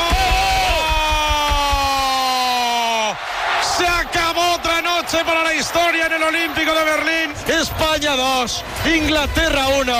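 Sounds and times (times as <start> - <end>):
stadium crowd cheering: 0.0 - 9.9
speech: 5.3 - 9.9.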